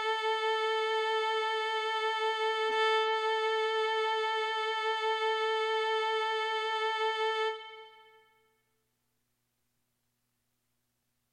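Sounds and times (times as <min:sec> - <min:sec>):
violin being tuned: 0:00.0 - 0:08.4.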